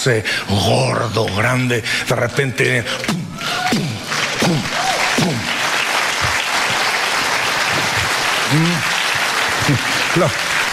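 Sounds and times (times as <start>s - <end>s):
speech: 0.0s - 5.6s, 8.5s - 8.9s, 9.7s - 10.6s
audience applauding: 3.0s - 10.7s.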